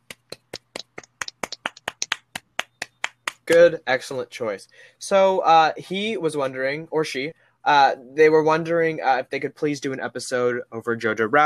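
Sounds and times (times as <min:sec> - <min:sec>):
hands clapping: 0:00.0 - 0:04.2
speech: 0:03.5 - 0:11.4.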